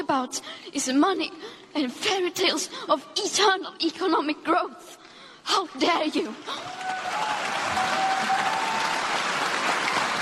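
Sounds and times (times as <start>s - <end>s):
speech: 0.1s - 7.0s
large crowd applause after a speech: 6.5s - 10.2s.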